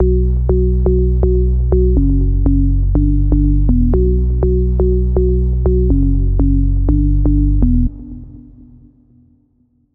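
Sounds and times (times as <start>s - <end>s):
cliche house chords: 0.0s - 8.5s
bassline: 0.0s - 9.5s.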